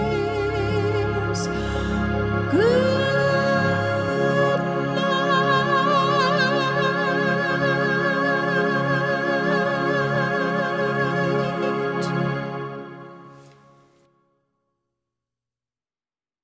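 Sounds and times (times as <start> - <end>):
solo vocals: 0.0 - 12.4.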